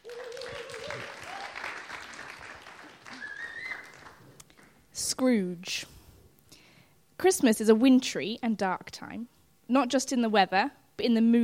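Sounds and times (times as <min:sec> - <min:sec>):
audience applause during a Christmas church service: 0:00.0 - 0:04.7
speech: 0:05.2 - 0:06.0, 0:07.2 - 0:11.4.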